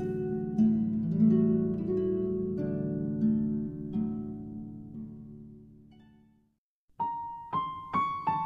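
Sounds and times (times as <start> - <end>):
harp concerto lullaby: 0.0 - 6.4.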